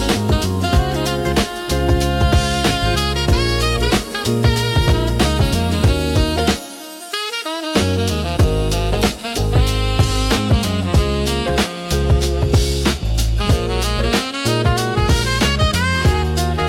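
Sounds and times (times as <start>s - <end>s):
uplifting lo-fi intro music with rhythmic saxophone: 0.0s - 16.6s.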